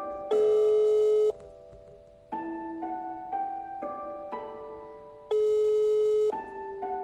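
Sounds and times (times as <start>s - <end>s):
telephone ringback electronic melody: 0.3s - 1.5s, 3.1s - 6.9s.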